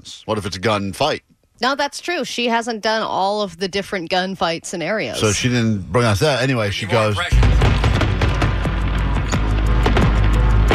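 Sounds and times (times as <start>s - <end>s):
speech: 0.0s - 7.6s
fireworks crackling and popping: 7.4s - 10.7s.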